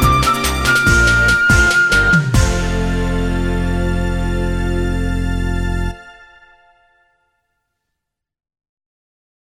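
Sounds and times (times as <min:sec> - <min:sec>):
flute theme: 0:00.0 - 0:07.3.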